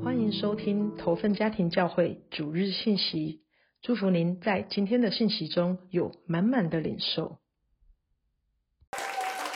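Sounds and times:
speech: 0.1s - 7.4s
audience clapping: 8.9s - 9.5s.

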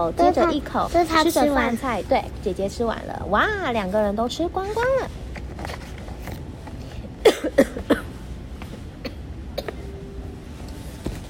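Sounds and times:
speech: 0.0s - 5.2s
mother coughing: 7.2s - 8.2s.

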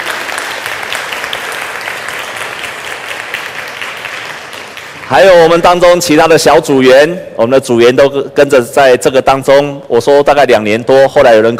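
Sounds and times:
audience applause: 0.0s - 5.3s
speech: 5.1s - 11.5s.

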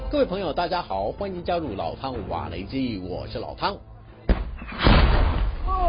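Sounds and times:
speech: 0.1s - 3.9s
Russian artillery shell exploding in a trench: 4.3s - 5.7s.

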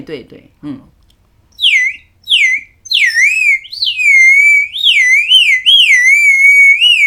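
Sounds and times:
speech: 0.0s - 1.0s
bamboo water bird whistle being blown: 1.6s - 7.0s.

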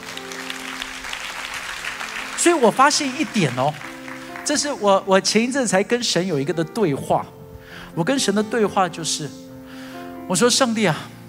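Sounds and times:
audience applause: 0.0s - 4.8s
speech: 2.4s - 3.9s, 4.5s - 7.4s, 8.0s - 9.4s, 10.3s - 11.2s.

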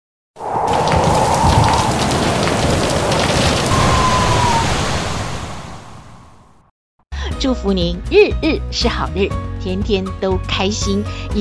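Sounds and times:
heavy afternoon thunderstorm rain: 0.4s - 6.4s
low thunder rumble: 0.4s - 6.5s
speech: 7.4s - 11.3s.

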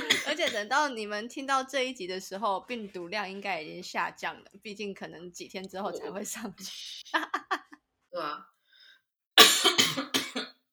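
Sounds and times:
speech: 0.4s - 7.6s, 8.2s - 8.6s
coughing: 5.6s - 6.4s, 9.4s - 10.6s.

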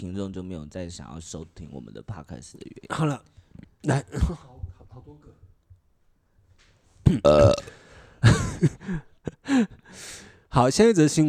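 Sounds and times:
speech: 0.0s - 5.3s, 7.1s - 7.8s, 8.6s - 11.2s
burp: 7.0s - 7.9s.

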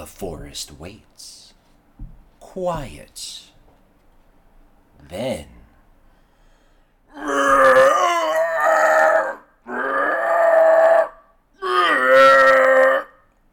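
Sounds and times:
speech: 0.1s - 1.4s, 2.6s - 3.5s, 5.0s - 5.6s, 7.1s - 7.6s
howler monkeys roaring: 7.1s - 13.3s.

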